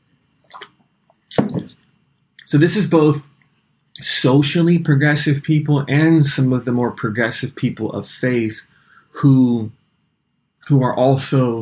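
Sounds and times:
person drinking water: 0.5s - 1.7s
speech: 2.5s - 3.3s, 4.2s - 9.8s, 10.7s - 11.6s.

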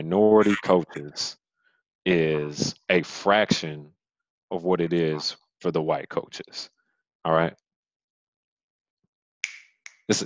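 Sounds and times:
speech: 0.0s - 1.4s, 2.0s - 7.6s, 10.1s - 10.2s
finger snaps: 9.4s - 10.2s.

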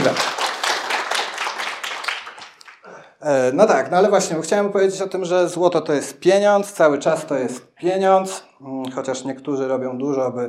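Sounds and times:
audience applause: 0.0s - 2.8s
speech: 3.2s - 10.4s.

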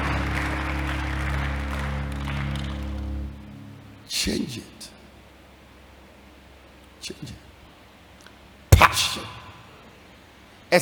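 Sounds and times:
audience clapping: 0.0s - 3.5s
speech: 4.2s - 5.0s, 7.1s - 7.5s.

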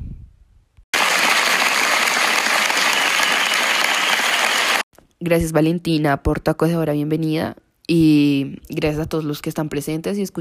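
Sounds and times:
applause welcoming a guest: 1.0s - 4.8s
speech: 5.2s - 10.3s.

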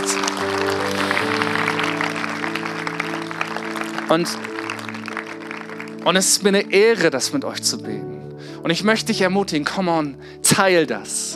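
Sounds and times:
audience applause: 0.0s - 6.7s
sustained keyboard chords: 0.0s - 11.3s
speech: 4.1s - 4.5s, 6.0s - 11.3s.

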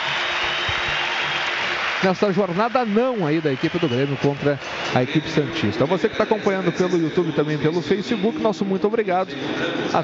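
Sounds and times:
stadium crowd applauding: 0.0s - 7.0s
speech: 2.0s - 10.0s.

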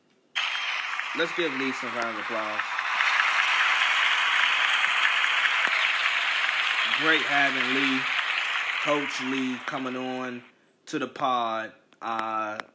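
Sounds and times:
whooping cheers: 0.4s - 10.4s
round of applause: 0.4s - 10.5s
speech: 1.2s - 2.8s, 7.0s - 8.2s, 8.8s - 12.7s.

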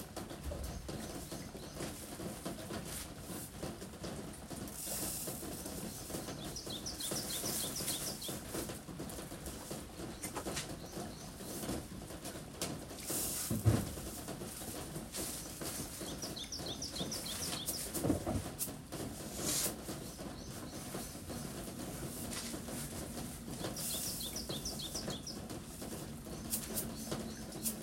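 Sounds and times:
vegetables being weighed and bagged, rustling: 1.0s - 27.8s
birds chirping: 5.4s - 12.1s, 14.5s - 19.0s, 19.7s - 27.8s.

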